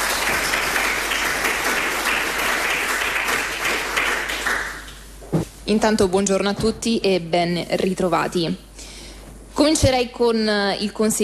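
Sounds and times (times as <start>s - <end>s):
audience applause: 0.0s - 4.9s
speech: 5.7s - 8.7s, 9.6s - 11.2s.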